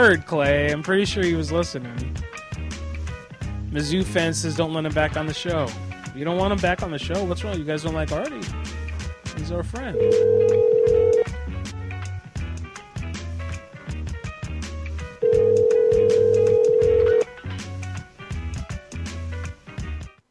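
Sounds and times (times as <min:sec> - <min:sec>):
speech: 0:00.0 - 0:02.4, 0:03.7 - 0:08.8, 0:09.4 - 0:10.6
unanswered telephone call ringing: 0:10.0 - 0:11.2, 0:15.2 - 0:17.2
rhythmic beat: 0:15.4 - 0:17.2.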